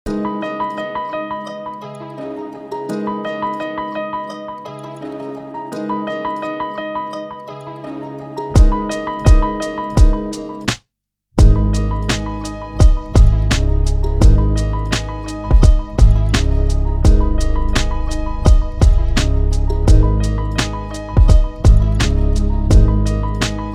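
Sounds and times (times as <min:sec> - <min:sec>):
classical hip hop instrumental: 0:00.1 - 0:10.8, 0:11.4 - 0:23.7.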